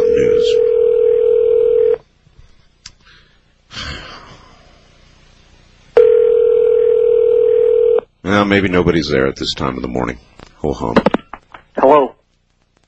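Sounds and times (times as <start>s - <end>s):
telephone dial tone: 0.6s - 2.0s, 6.0s - 8.0s
speech: 8.5s - 11.1s.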